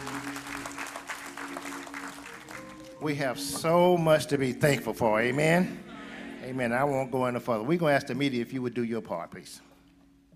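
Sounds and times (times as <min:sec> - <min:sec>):
audience applause: 0:00.0 - 0:03.0
speech: 0:03.0 - 0:05.8, 0:06.5 - 0:09.7.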